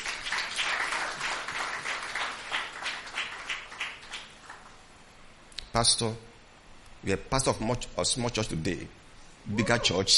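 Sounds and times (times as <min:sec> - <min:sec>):
audience applause: 0:00.0 - 0:04.6
speech: 0:05.7 - 0:06.3, 0:07.0 - 0:10.1.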